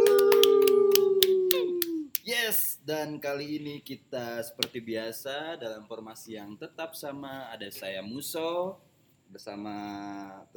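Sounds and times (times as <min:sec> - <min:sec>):
hand claps: 0:00.0 - 0:02.3
speech: 0:02.5 - 0:10.5.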